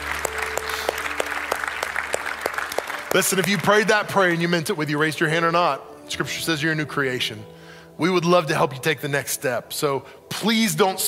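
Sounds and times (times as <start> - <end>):
crowd applause: 0.0 - 4.2
speech: 3.1 - 11.0.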